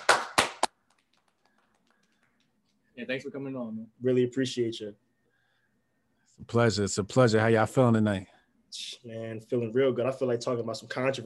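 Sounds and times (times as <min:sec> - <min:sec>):
audience clapping: 0:00.0 - 0:02.4
speech: 0:03.0 - 0:05.0, 0:06.4 - 0:11.2.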